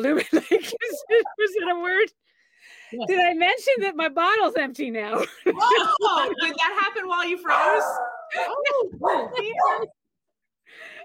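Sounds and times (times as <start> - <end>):
laughter: 0.0 - 2.0, 5.1 - 10.0
speech: 0.0 - 10.0
dog barking: 7.5 - 9.9.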